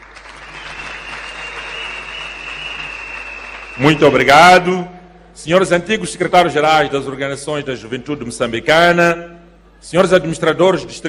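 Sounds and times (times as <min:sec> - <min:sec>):
audience applause: 0:00.0 - 0:04.2
speech: 0:03.8 - 0:11.0.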